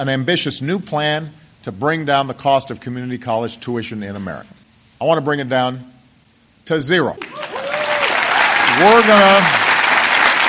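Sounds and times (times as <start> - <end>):
speech: 0.0 - 5.9, 6.7 - 7.4, 8.8 - 9.6
enthusiastic applause: 7.2 - 10.4.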